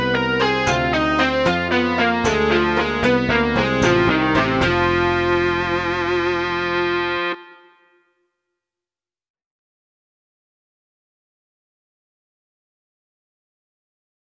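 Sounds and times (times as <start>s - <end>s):
blues music: 0.0s - 7.9s.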